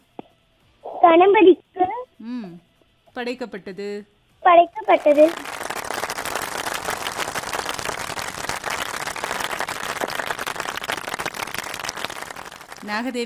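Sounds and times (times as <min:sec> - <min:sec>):
speech: 0:01.1 - 0:05.5, 0:12.8 - 0:13.2
group applauding: 0:04.8 - 0:13.2.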